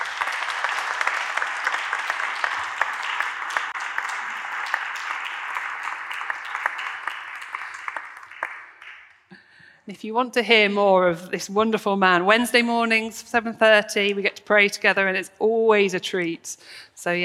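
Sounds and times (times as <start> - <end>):
round of applause from a sizable crowd: 0.0 - 9.3
speech: 9.9 - 17.2.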